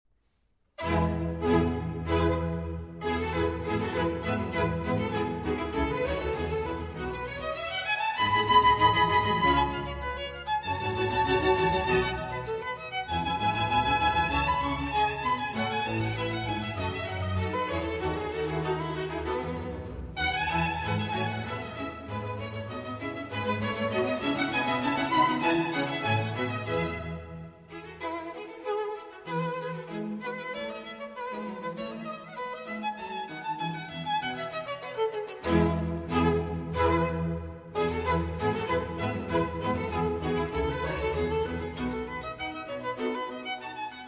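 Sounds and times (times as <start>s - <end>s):
violin concerto: 0.8s - 44.0s.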